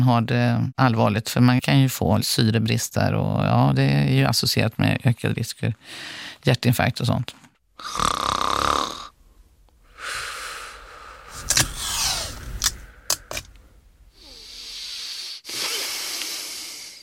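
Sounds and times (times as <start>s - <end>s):
speech: 0.0s - 8.3s
person snoring: 7.8s - 9.2s, 9.8s - 13.4s, 14.1s - 17.0s.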